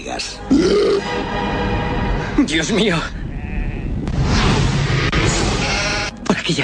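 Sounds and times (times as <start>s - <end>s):
speech: 0.0s - 1.6s, 2.4s - 3.3s, 6.4s - 6.6s
loud steady low rumble: 1.2s - 6.2s
flock of sheep bleating: 3.3s - 4.0s.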